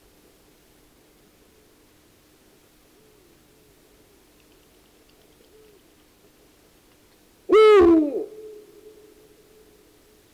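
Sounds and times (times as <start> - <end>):
Eurasian eagle-owl calls: 7.5 - 9.8.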